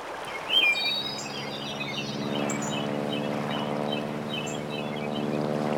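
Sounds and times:
Tudor ambience: 0.2s - 5.6s.

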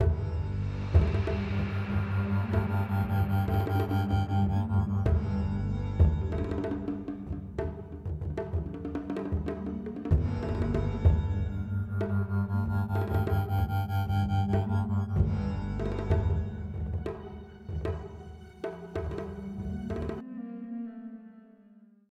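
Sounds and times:
music: 0.0s - 22.1s.

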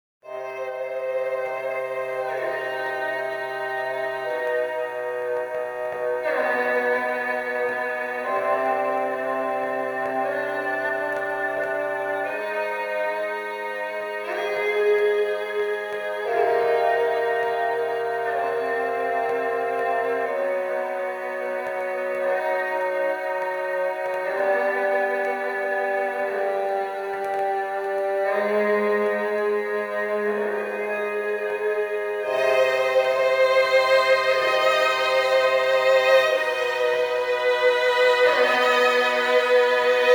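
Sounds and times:
strings theme music: 0.2s - 40.1s.

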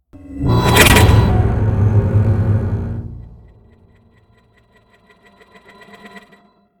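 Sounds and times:
musical stingers: 0.2s - 4.2s.

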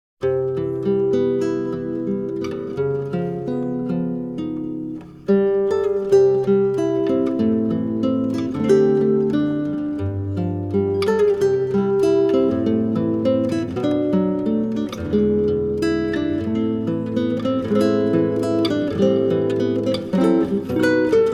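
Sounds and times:
guitar solo: 0.2s - 21.3s.

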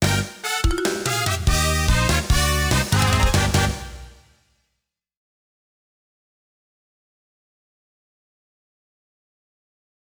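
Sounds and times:
losing theme music: 0.0s - 4.3s.

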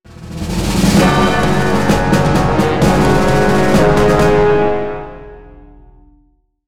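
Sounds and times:
achievement earned stinger: 0.6s - 4.7s.

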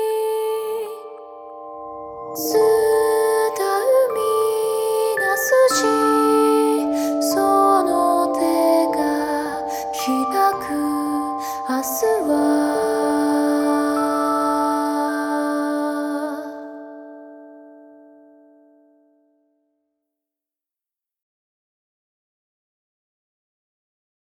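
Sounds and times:
Japanese song: 0.2s - 18.5s.

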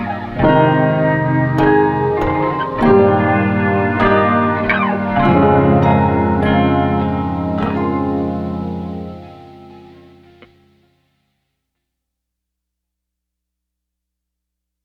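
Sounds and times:
guitar: 0.0s - 11.0s.

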